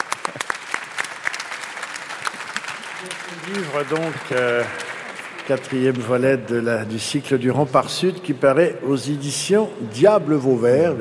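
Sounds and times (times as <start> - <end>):
audience applause: 0.0 - 6.7
speech: 3.3 - 4.9, 5.5 - 11.0.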